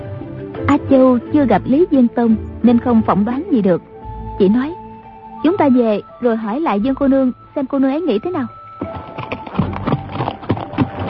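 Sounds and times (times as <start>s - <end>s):
speech: 0.8s - 4.8s, 5.4s - 8.6s
galloping horse hoofbeats on a hard road: 8.6s - 11.0s.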